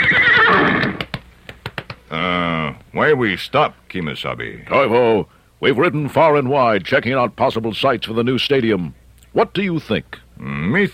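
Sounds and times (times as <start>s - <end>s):
Taconite the Iron Ranger's horse neighing: 0.0s - 1.0s
sharp knocks: 0.9s - 2.0s
speech: 3.0s - 10.9s.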